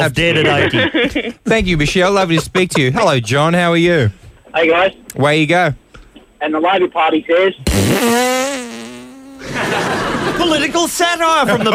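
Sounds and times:
speech: 0:00.0 - 0:05.8, 0:06.4 - 0:08.4, 0:09.4 - 0:11.7
laughter: 0:00.2 - 0:01.4, 0:02.3 - 0:03.3, 0:09.4 - 0:11.7
fart noise: 0:07.6 - 0:09.6.

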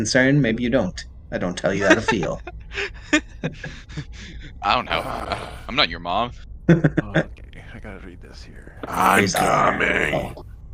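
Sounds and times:
speech: 0:00.0 - 0:10.5
laughter: 0:01.6 - 0:05.9, 0:06.7 - 0:10.3
man's voice roaring imitating a barbarian: 0:04.7 - 0:05.8, 0:07.6 - 0:10.3.

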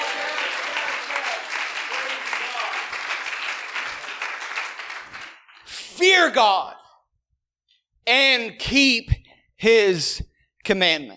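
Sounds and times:
audience clapping hands: 0:00.0 - 0:05.8
speech: 0:06.0 - 0:06.8, 0:08.1 - 0:11.1.

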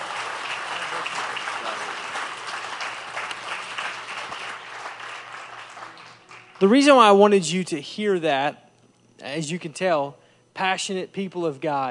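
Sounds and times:
audience applause: 0:00.0 - 0:06.6
speech: 0:06.6 - 0:08.6, 0:09.2 - 0:11.8.

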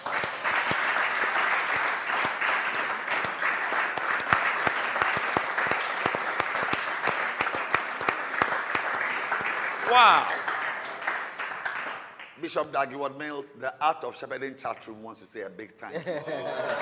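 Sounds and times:
congregation applauding in a church service: 0:00.0 - 0:12.5, 0:16.5 - 0:16.8
speech: 0:10.0 - 0:10.4, 0:12.4 - 0:16.8
laughter: 0:15.9 - 0:16.8.

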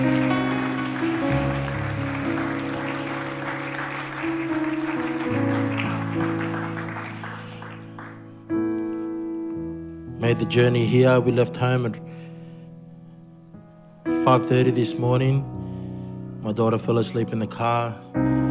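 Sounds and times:
audience clapping hands in praise: 0:00.0 - 0:08.8
speech: 0:10.3 - 0:12.2, 0:14.3 - 0:15.7, 0:16.4 - 0:18.4.

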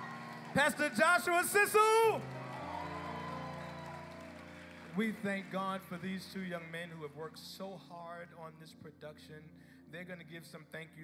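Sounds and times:
audience clapping: 0:00.0 - 0:07.4
speech: 0:00.6 - 0:02.4, 0:05.0 - 0:11.0.

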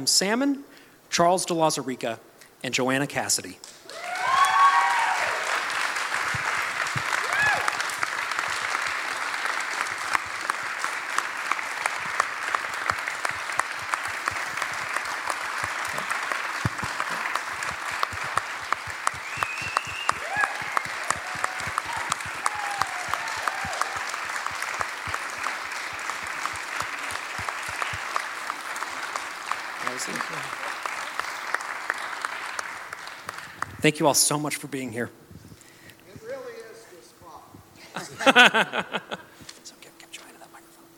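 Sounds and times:
speech: 0:00.0 - 0:03.8, 0:33.9 - 0:35.3
audience applause welcoming guests at an evening live event: 0:03.9 - 0:34.0, 0:38.2 - 0:39.2
laughter: 0:37.8 - 0:39.4.

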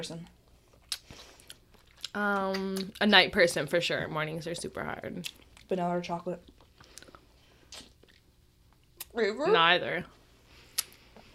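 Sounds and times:
speech: 0:00.0 - 0:00.4, 0:02.1 - 0:06.5, 0:09.2 - 0:10.2
person chewing a lemon: 0:00.4 - 0:03.0, 0:06.4 - 0:09.0.

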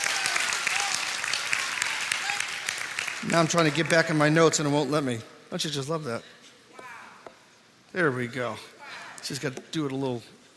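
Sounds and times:
church congregation clapping during a service: 0:00.0 - 0:04.8
speech: 0:03.2 - 0:06.4, 0:07.9 - 0:10.4.

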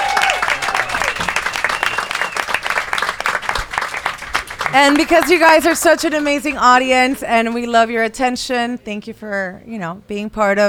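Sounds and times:
whistle-like cheers: 0:00.0 - 0:02.8
audience applause at a live music show in Jack Daniel's Room Number 7: 0:00.0 - 0:06.4
speech: 0:04.7 - 0:10.6.

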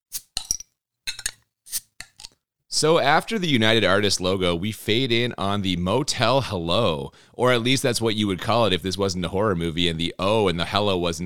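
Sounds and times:
can or bottle of craft beer from the farmhouse brewery being opened: 0:00.1 - 0:00.6, 0:01.2 - 0:01.8
speech: 0:02.8 - 0:11.2.

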